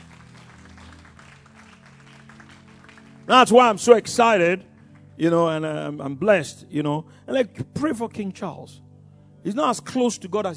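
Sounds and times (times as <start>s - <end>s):
audience applause: 0.0s - 3.8s
speech: 3.3s - 8.8s, 9.4s - 10.5s.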